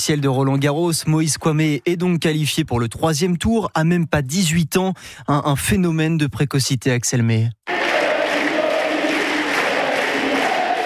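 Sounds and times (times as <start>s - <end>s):
speech: 0.0s - 7.7s
tennis crowd at Roland-Garros chanting a player's name: 7.7s - 10.8s.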